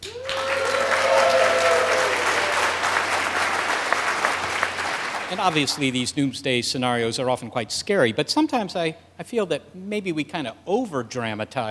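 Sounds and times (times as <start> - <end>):
whooping cheer: 0.0 - 4.4
live audience applause at a science-show taping: 0.0 - 6.0
speech: 5.3 - 11.7.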